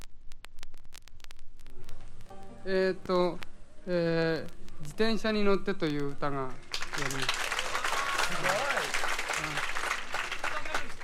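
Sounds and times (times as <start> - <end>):
speech: 2.6 - 7.4, 8.3 - 8.7
crowd applause: 6.7 - 11.0
faint cheers: 7.0 - 11.0.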